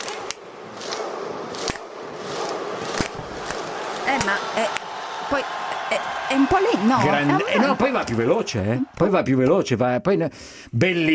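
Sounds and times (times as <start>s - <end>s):
fans' rhythmic thunderclap: 0.0s - 7.0s
crowd noise: 0.0s - 9.9s
laughter: 2.8s - 9.4s
speech: 4.2s - 11.1s.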